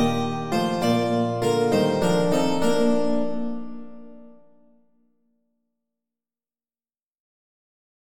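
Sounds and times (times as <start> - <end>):
multi-instrument music: 0.0 - 4.7.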